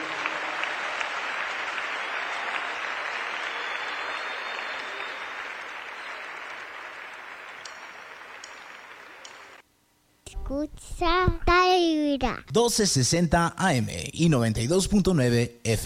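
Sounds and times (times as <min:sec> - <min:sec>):
audience applauding: 0:00.0 - 0:09.6
speech: 0:10.5 - 0:15.8.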